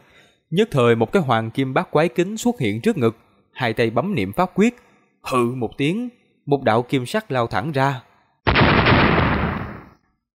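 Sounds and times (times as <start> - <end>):
speech: 0.5 - 8.1
loud explosion: 8.5 - 10.0.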